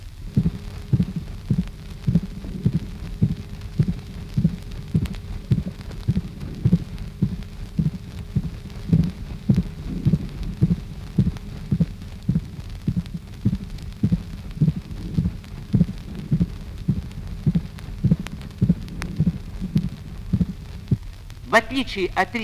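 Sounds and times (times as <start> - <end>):
three-part gallop rhythm heartbeat through a stethoscope: 0.0 - 21.6
faint hum: 0.0 - 22.4
speech: 21.8 - 22.4.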